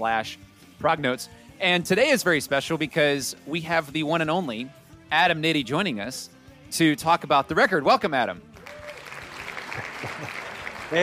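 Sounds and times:
speech: 0.0s - 8.5s
pre-recorded applause from a small crowd: 8.6s - 11.0s
laughter: 9.4s - 11.0s.

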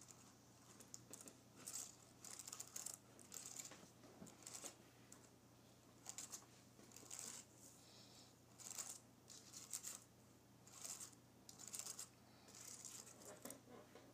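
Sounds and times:
faint steady low hum: 0.0s - 14.1s
fingernails grazing across a keyboard: 0.8s - 3.7s, 4.3s - 4.8s, 6.0s - 7.4s, 8.6s - 10.0s, 10.7s - 13.6s.

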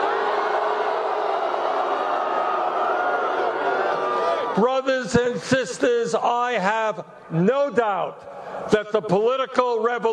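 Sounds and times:
huge crowd cheering at a Democratic 2020 presidential campaign rally: 0.0s - 5.1s
speech: 4.6s - 10.1s.

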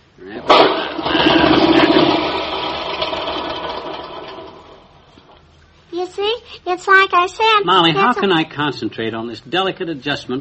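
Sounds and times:
lawnmower engine starting: 0.4s - 5.0s
speech: 6.7s - 10.3s.

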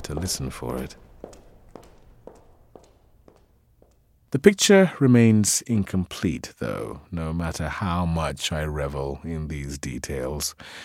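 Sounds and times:
woman's footsteps: 0.0s - 4.3s
speech: 0.1s - 1.1s, 4.3s - 10.8s.

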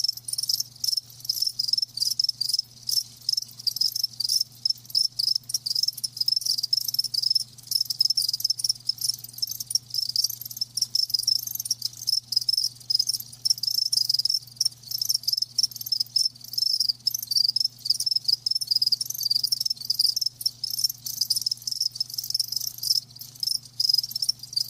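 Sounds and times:
crickets chirping: 0.0s - 24.6s.

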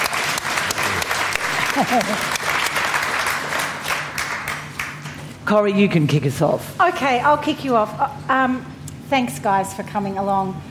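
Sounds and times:
audience applause: 0.0s - 5.0s
laughter: 0.8s - 2.5s
speech: 1.8s - 2.4s, 5.5s - 10.6s.

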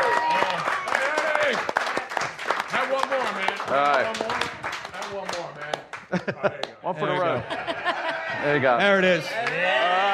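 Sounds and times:
audience applause: 0.0s - 6.2s
speech: 6.1s - 7.6s, 8.4s - 10.0s
laughter: 6.1s - 8.8s.

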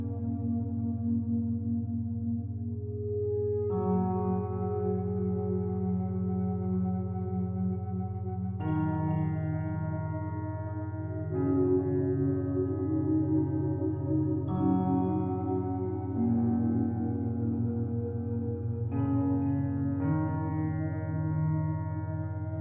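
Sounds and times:
binaural beat low drone: 0.0s - 22.6s
soft sustained chords: 0.0s - 22.6s.

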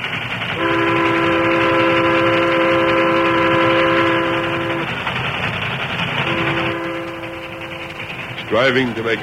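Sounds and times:
speeding steam train rumbling: 0.0s - 9.2s
train whistle blast: 0.6s - 4.9s, 6.3s - 8.0s
speech: 8.6s - 9.2s.

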